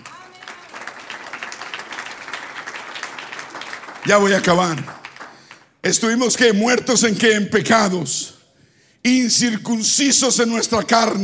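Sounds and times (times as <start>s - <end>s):
audience applause: 0.0s - 5.8s
speech: 4.0s - 5.0s, 5.8s - 8.3s, 9.0s - 11.2s.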